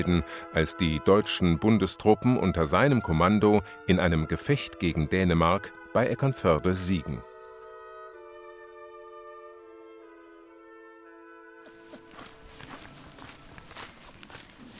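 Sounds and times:
speech: 0:00.0 - 0:07.3
footsteps of hikers walking out of a forest on the Amtsbotenweg trail: 0:11.6 - 0:14.7.

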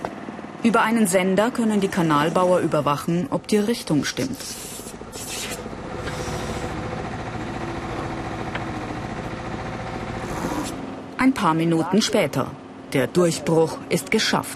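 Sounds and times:
speech: 0:00.6 - 0:04.8, 0:11.2 - 0:14.5
press drilling machine boring through soil: 0:04.0 - 0:10.9.

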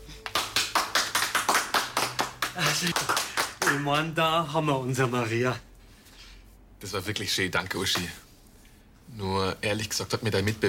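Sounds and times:
two people clapping hands: 0:00.1 - 0:04.2
speech: 0:02.6 - 0:05.7, 0:06.8 - 0:08.2, 0:09.1 - 0:10.6.

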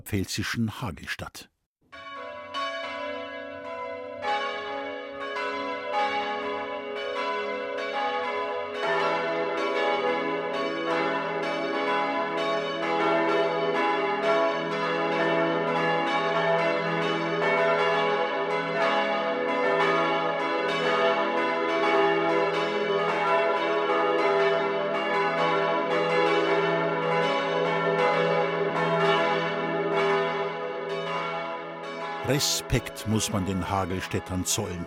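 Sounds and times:
speech: 0:00.0 - 0:01.5, 0:32.4 - 0:34.8
church bells ringing a midday peal: 0:01.9 - 0:34.8.

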